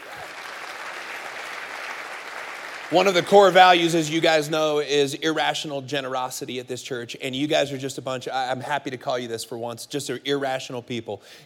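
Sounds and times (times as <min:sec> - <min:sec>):
crowd clapping: 0:00.0 - 0:04.2
speech: 0:02.9 - 0:11.4.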